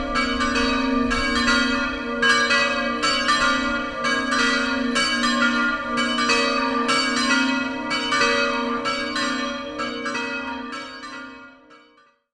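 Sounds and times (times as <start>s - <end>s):
bells ringing in the countryside: 0.0s - 12.0s.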